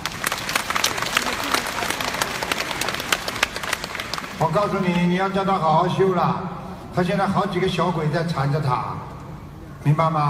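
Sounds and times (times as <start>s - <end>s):
crowd applauding: 0.0s - 5.0s
speech: 4.4s - 9.1s, 9.8s - 10.2s.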